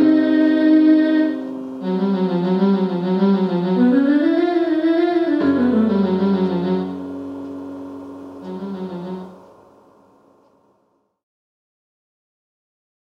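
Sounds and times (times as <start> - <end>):
viola: 0.0 - 9.6.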